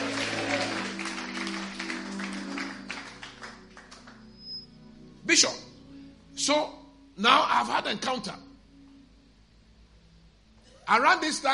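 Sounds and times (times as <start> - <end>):
audience clapping hands: 0.0 - 4.3
speech: 5.3 - 5.6, 6.4 - 8.4, 10.9 - 11.5.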